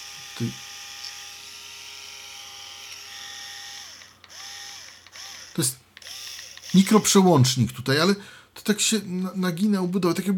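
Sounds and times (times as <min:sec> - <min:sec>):
rotary electric shaver running without heads: 0:00.0 - 0:07.2
speech: 0:00.4 - 0:00.7, 0:05.6 - 0:05.8, 0:06.7 - 0:10.3.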